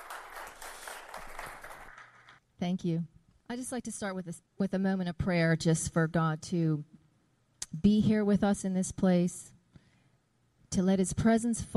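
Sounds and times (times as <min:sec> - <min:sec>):
crowd applauding: 0:00.0 - 0:02.4
speech: 0:02.6 - 0:07.0, 0:07.7 - 0:09.6, 0:10.7 - 0:11.7.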